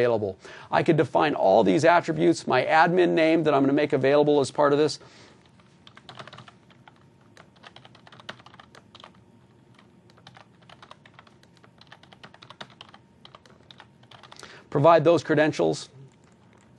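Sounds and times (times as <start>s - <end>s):
speech: 0.0s - 5.3s, 14.8s - 16.0s
typing on a computer keyboard: 5.4s - 14.4s, 16.1s - 16.7s.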